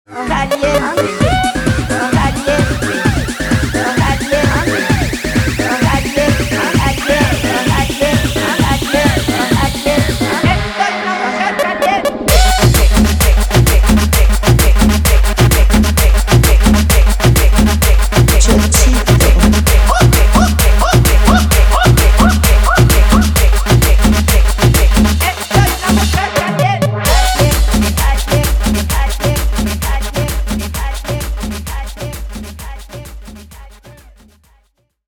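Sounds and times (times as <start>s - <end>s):
guaracha remix music: 0.1s - 34.6s.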